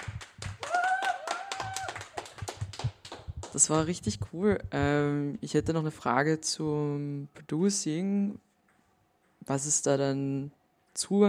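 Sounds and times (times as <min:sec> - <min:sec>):
audience clapping: 0:00.0 - 0:03.8
speech: 0:03.6 - 0:08.4, 0:09.5 - 0:11.2.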